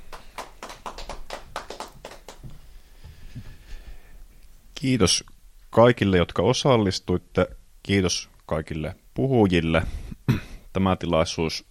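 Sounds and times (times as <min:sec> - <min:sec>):
audience applause: 0:00.0 - 0:02.5
speech: 0:04.8 - 0:10.0, 0:10.8 - 0:11.6.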